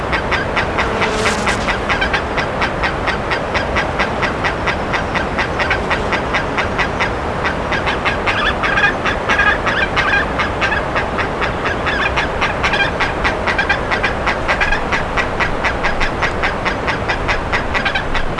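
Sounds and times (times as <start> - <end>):
birds calling harshly: 0.1 - 18.3
constant broad hiss: 1.1 - 2.1.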